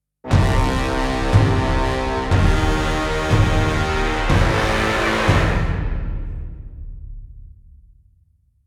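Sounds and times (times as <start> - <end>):
epic orchestral stinger: 0.3 - 6.6.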